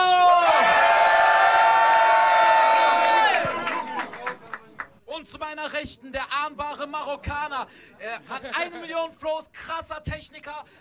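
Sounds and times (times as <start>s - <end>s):
crowd cheering: 0.0s - 4.8s
scattered sharp claps and whoops: 0.4s - 4.9s
speech: 6.4s - 10.8s
laughter: 8.0s - 9.0s.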